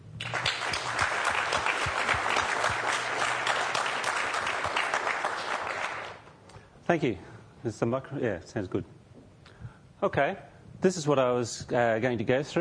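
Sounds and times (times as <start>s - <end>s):
audience applause welcoming a speaker at a technical conference: 0.2s - 6.3s
speech: 6.9s - 9.0s, 10.0s - 12.5s.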